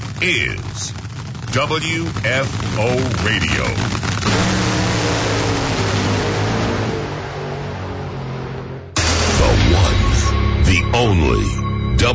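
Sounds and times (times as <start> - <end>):
top fuel dragster engine at full throttle at an NHRA drag race: 0.0 - 11.6
speech: 0.2 - 5.3, 10.9 - 12.1.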